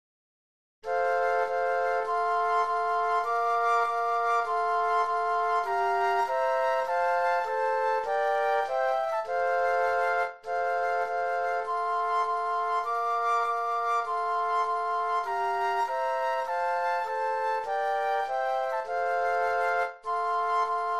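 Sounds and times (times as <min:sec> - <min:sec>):
flute trio playing: 0:00.8 - 0:20.9.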